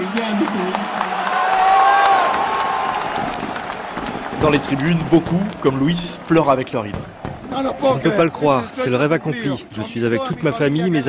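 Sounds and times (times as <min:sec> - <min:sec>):
sharp claps: 0:00.0 - 0:08.0
stadium crowd cheering: 0:00.0 - 0:11.0
speech: 0:04.4 - 0:11.0.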